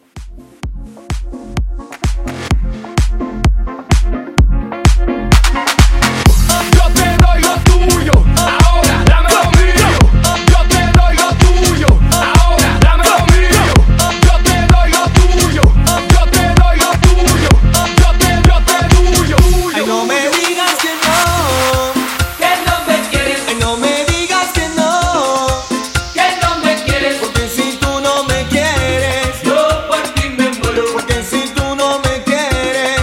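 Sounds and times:
Latin club music at 128 BPM: 0.0s - 33.0s.

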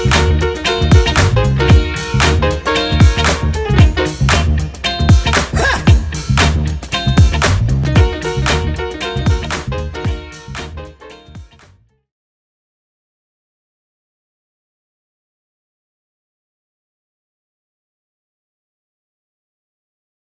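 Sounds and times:
drum beat at 115 bpm: 0.0s - 10.8s, 11.4s - 11.6s.

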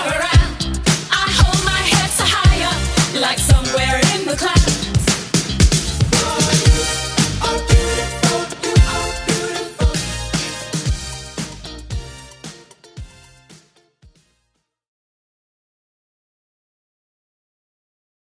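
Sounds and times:
70s-style Redrum drum machine beat: 0.0s - 14.2s.

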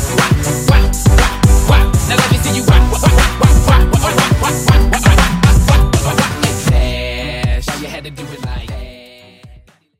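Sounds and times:
drum beat: 0.0s - 7.9s.

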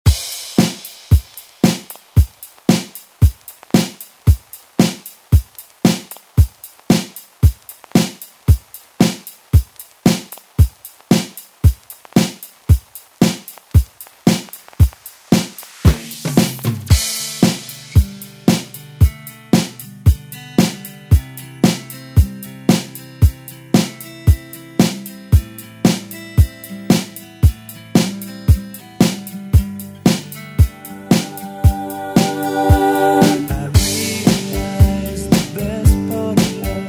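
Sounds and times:
80s drum beat: 0.0s - 36.6s.

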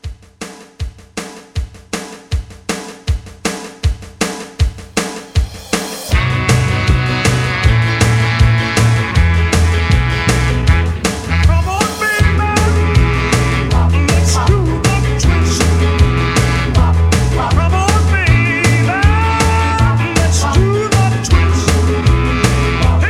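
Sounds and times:
1960s rock drum beat: 0.0s - 23.0s.

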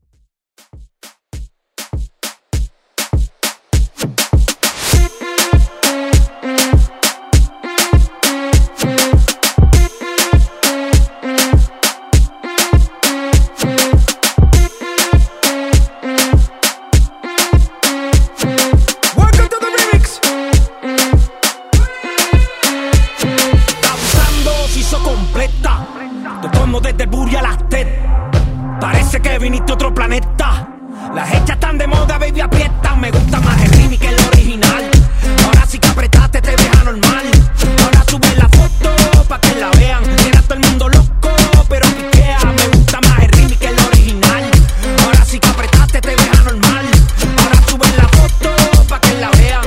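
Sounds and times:
reggaeton music: 0.6s - 49.6s.

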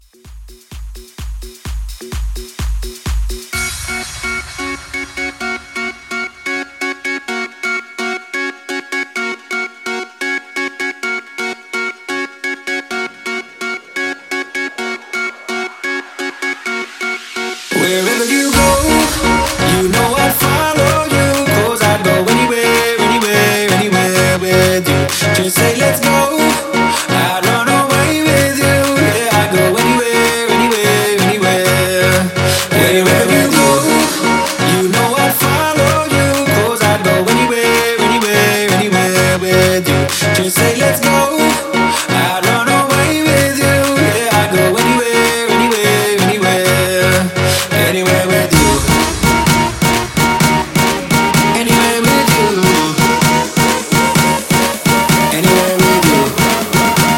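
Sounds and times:
music mashup: 0.0s - 57.1s.

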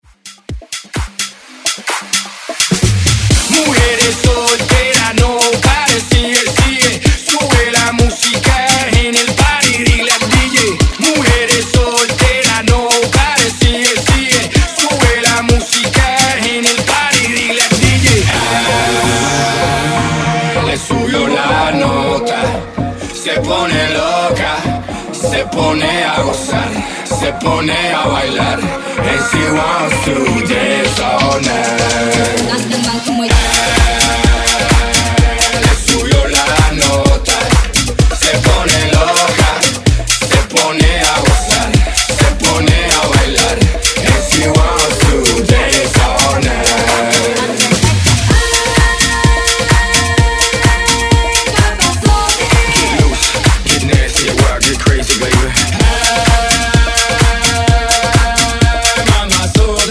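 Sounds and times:
Latin dance music: 0.0s - 59.8s.

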